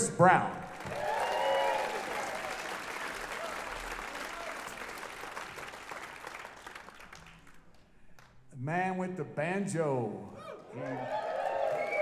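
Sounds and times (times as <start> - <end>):
speech: 0.2 - 0.6, 8.7 - 11.2
audience applause: 0.6 - 8.3, 10.4 - 11.9.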